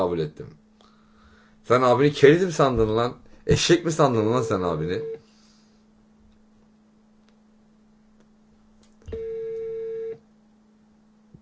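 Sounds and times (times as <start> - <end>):
speech: 0.0 - 0.6, 1.6 - 5.2
faint low hum: 0.0 - 11.3
unanswered WhatsApp video call ringing: 9.1 - 10.2.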